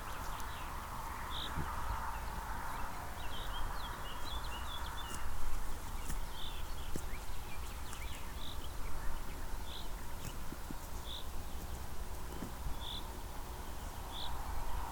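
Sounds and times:
sheep grazing and chewing: 0.0 - 14.9.

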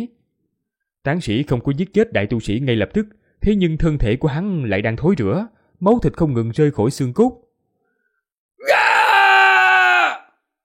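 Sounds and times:
speech: 1.0 - 7.4
man roaring and screaming in anger: 8.6 - 10.4.

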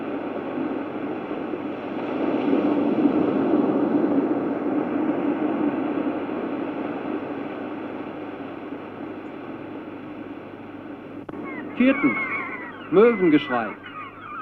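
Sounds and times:
waves breaking against rocks below a terrace: 0.0 - 10.5
speech: 11.8 - 12.3, 12.9 - 13.9.

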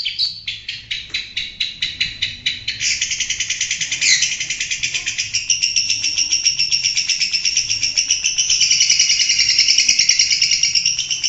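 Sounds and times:
long-tailed shrike song: 0.0 - 11.2.

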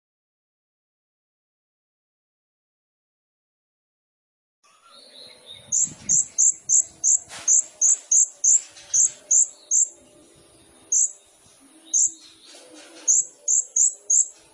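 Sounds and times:
sunbird chirping: 4.7 - 14.5
faint twittering: 5.6 - 14.5.

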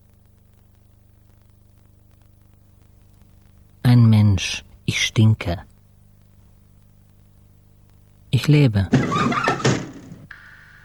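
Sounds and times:
quiet steady hum: 0.0 - 10.8
speech: 5.2 - 5.7, 8.5 - 9.5
window rattling knocks as it is opened: 8.9 - 10.2.

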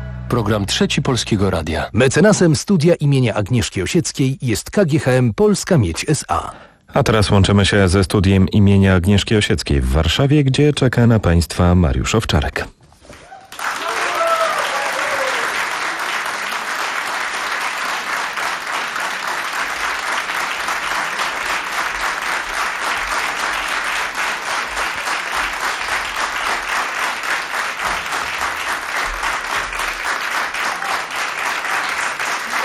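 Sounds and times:
speech: 0.3 - 12.8
brief voice or cheer: 13.1 - 15.6
studio audience in Warsaw applauding to welcome artists onto the stage: 13.1 - 32.6.

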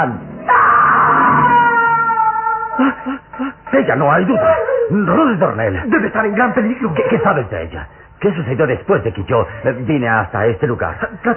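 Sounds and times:
speech: 0.0 - 0.2, 3.8 - 11.3
young woman screaming while carried off by force through underground castle passages: 0.4 - 3.1, 4.1 - 5.2.

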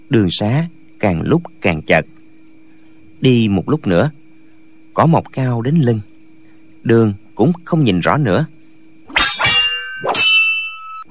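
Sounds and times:
speech: 0.1 - 2.2, 3.2 - 4.2, 5.0 - 6.1, 6.8 - 8.6
weapons clashing in a fight in tall grass: 9.1 - 11.0.

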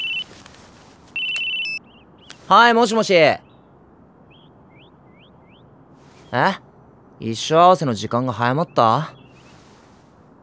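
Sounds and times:
mobile phone ringtone: 0.0 - 0.5, 1.2 - 1.8
speech: 2.5 - 3.4, 6.3 - 6.6, 7.2 - 9.2.

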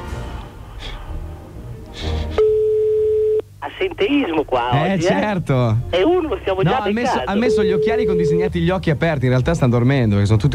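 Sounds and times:
steady single-pitch telephone line tone: 2.4 - 3.5, 7.1 - 8.6
speech: 3.8 - 10.5.

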